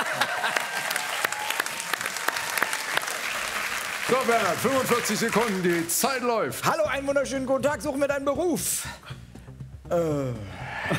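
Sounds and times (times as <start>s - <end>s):
live audience applauding: 0.0s - 6.4s
speech: 4.1s - 9.1s, 9.9s - 10.9s.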